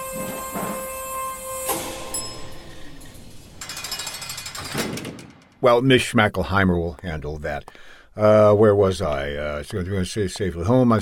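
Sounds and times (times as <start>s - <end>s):
elevator descending: 0.0s - 5.7s
speech: 5.6s - 11.0s.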